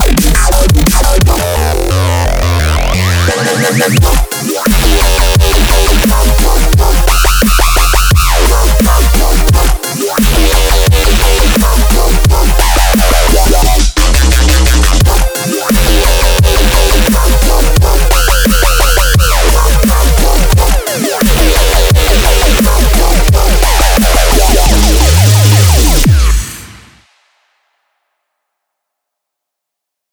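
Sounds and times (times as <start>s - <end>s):
synth presets: 0.0s - 27.1s.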